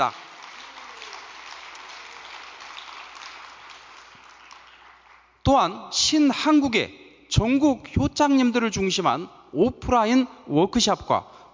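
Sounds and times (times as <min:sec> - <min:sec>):
speech: 0:00.0 - 0:00.2, 0:05.5 - 0:11.3
audience applause: 0:00.0 - 0:05.3.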